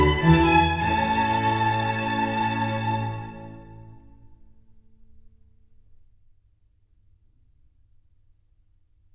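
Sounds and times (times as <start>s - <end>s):
concerto for strings in A major: 0.0s - 4.1s.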